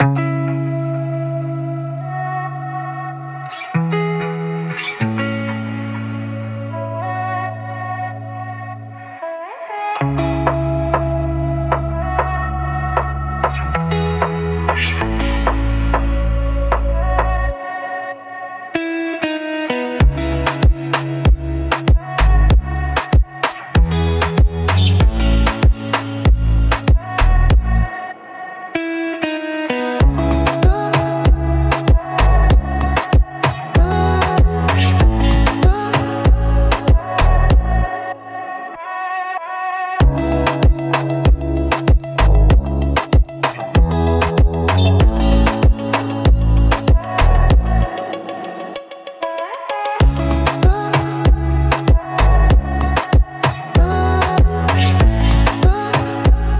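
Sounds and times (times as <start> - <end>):
melancholic danceable reggaeton music: 0.0 - 56.5.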